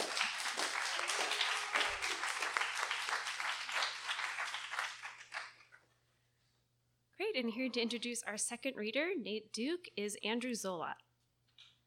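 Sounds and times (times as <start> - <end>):
audience applause: 0.0 - 5.6
speech: 7.4 - 11.0.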